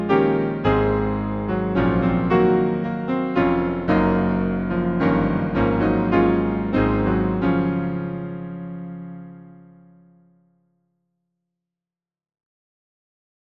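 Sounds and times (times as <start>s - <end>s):
hymn on piano: 0.0s - 10.2s.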